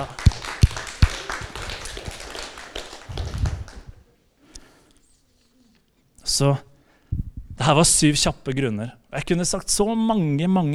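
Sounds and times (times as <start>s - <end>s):
audience applause: 0.0s - 4.0s
speech: 6.4s - 6.7s, 7.6s - 10.7s.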